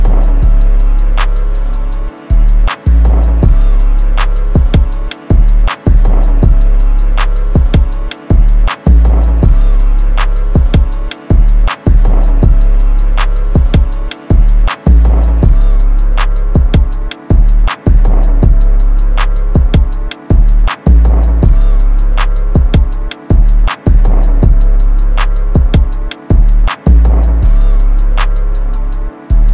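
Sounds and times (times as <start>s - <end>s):
type beat: 0.0s - 29.5s.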